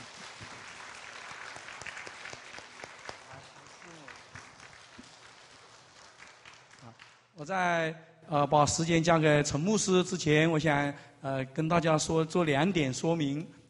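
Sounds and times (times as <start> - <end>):
warm applause from audience: 0.0 - 7.2
speech: 7.4 - 13.6.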